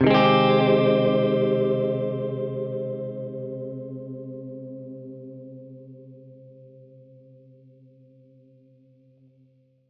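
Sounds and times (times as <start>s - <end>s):
Gretsch guitar C minor flat six chord: 0.0s - 7.0s.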